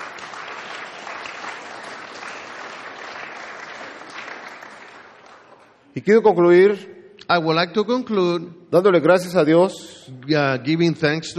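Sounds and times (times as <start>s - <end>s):
congregation applauding during a bilingual Spanish and English church service: 0.0s - 6.0s
speech: 6.0s - 11.3s.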